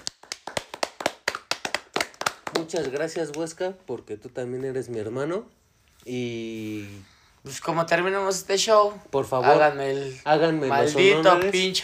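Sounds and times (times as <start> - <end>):
applause: 0.0 - 3.5
speech: 2.6 - 11.8.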